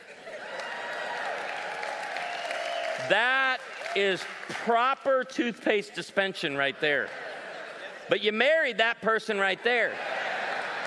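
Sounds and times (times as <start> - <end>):
crowd clapping and cheering: 0.0 - 5.3, 6.5 - 7.5, 10.0 - 10.8
whoops: 0.4 - 3.0
speech: 3.0 - 7.3, 8.1 - 10.1
laughter: 6.4 - 8.4, 9.7 - 10.8.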